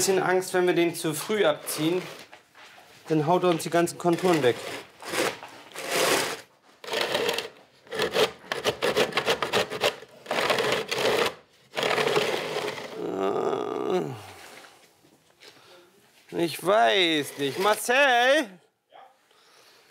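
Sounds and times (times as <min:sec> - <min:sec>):
speech: 0:00.0 - 0:02.2, 0:03.1 - 0:05.2, 0:16.5 - 0:18.6
profile template test-pulled along a shaft: 0:04.1 - 0:13.0, 0:17.0 - 0:18.0.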